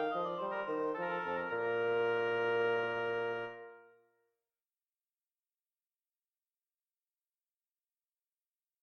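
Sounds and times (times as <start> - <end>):
bassoon: 0.0 - 4.0
oboe: 0.0 - 4.0.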